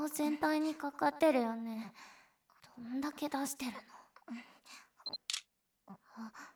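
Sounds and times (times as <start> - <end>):
speech: 0.1 - 2.1, 2.8 - 4.8
camera electronic beep: 5.1 - 5.4.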